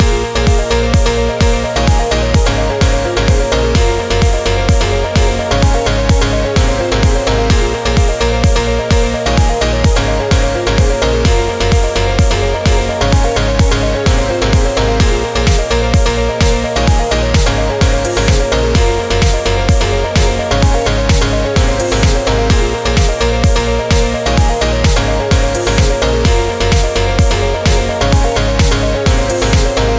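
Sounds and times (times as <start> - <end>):
piano-style music: 0.0 - 29.9.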